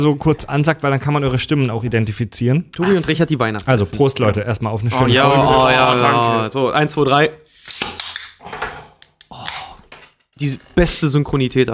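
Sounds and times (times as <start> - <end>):
speech: 0.0 - 8.0, 10.4 - 11.7
drink being poured close to microphone: 7.5 - 8.4.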